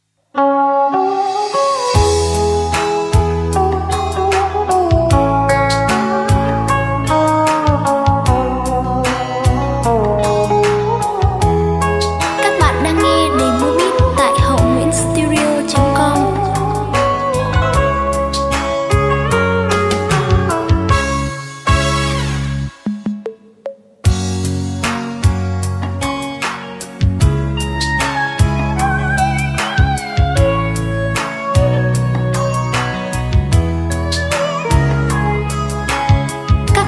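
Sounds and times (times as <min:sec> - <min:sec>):
music beat: 0:01.0 - 0:36.8.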